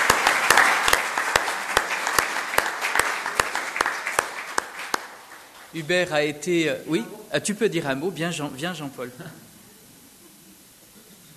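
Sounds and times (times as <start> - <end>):
audience applause: 0.0 - 7.0
speech: 5.7 - 9.4.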